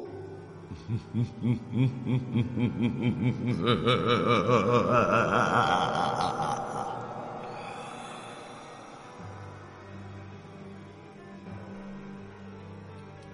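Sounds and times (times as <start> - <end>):
person laughing evilly: 0.7 - 7.5.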